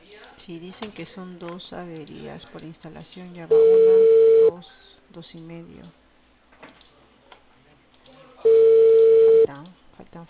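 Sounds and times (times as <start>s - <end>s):
speech: 0.5s - 6.0s, 9.5s - 10.2s
telephone line tone during a call to Cable Perú: 3.5s - 4.6s, 8.5s - 9.5s.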